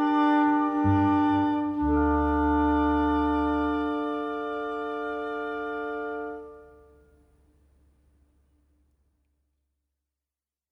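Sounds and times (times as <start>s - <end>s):
instrumental melody: 0.0s - 7.0s.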